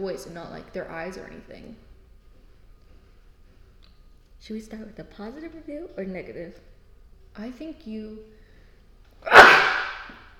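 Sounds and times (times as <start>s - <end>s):
speech: 0.0s - 1.9s, 4.4s - 6.7s, 7.4s - 8.4s
sneeze: 9.2s - 10.2s.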